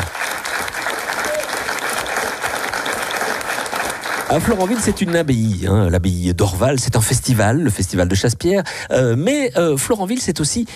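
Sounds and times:
audience applause: 0.0s - 5.5s
speech: 4.3s - 10.7s.

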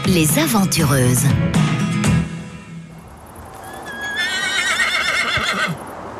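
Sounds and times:
speech: 0.1s - 1.8s
hooves shuffling and clopping: 2.9s - 6.0s
herd of horses along a pasture neighing: 3.6s - 5.9s.

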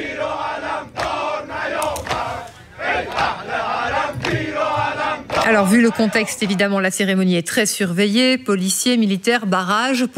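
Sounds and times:
large crowd chanting slogans in unison: 0.0s - 6.7s
speech: 5.5s - 10.1s.

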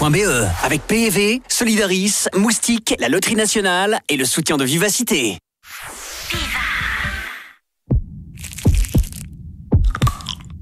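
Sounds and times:
speech: 0.0s - 6.6s
heartbeat thumps: 7.9s - 10.5s
crackling crunch like biting into chocolate: 8.4s - 10.5s.

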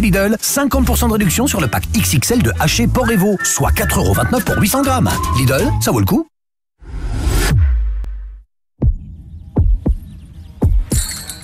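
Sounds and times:
speech: 0.0s - 6.3s
swelling whoosh: 6.8s - 8.4s
heartbeat sound effect: 8.8s - 11.0s.

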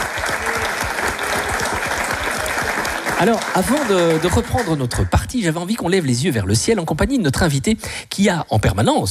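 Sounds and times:
audience applause: 0.0s - 5.3s
speech: 3.2s - 9.0s.

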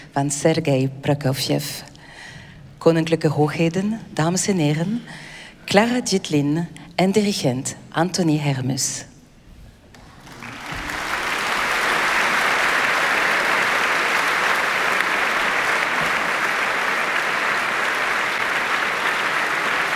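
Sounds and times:
speech: 0.2s - 1.9s, 2.8s - 9.1s
audience applause as soloist enters stage: 10.0s - 19.9s.

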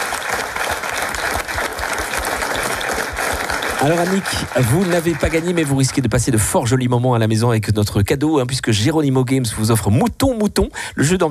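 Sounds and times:
studio audience applause: 0.0s - 6.8s
speech: 3.8s - 11.2s.

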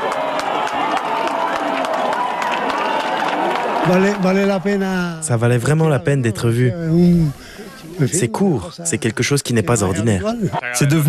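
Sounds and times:
hands clapping: 0.0s - 4.2s
large crowd cheering and shouting during eclipse: 0.0s - 5.0s
speech: 3.8s - 11.0s.

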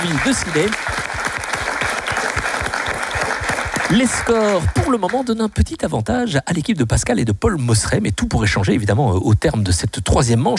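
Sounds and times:
speech: 0.0s - 1.1s, 3.9s - 10.5s
live game-show audience applause in a town hall: 0.0s - 5.6s.

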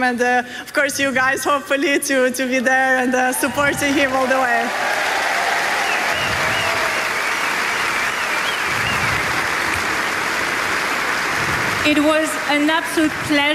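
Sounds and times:
speech: 0.0s - 5.0s, 11.9s - 13.5s
audience applause: 3.4s - 13.5s.

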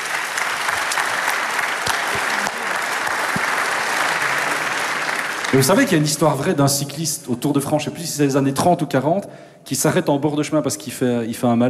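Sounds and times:
audience applause: 0.0s - 6.2s
speech: 5.5s - 11.6s.

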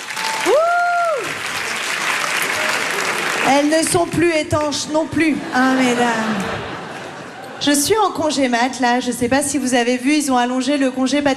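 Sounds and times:
audience applause: 0.0s - 4.8s
speech: 3.5s - 6.7s, 7.6s - 11.3s
laughter: 5.2s - 7.9s.

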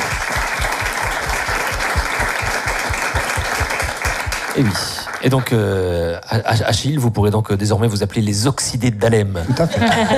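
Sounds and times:
audience applause: 0.0s - 5.8s
speech: 4.6s - 10.1s
laughter: 9.4s - 10.1s.

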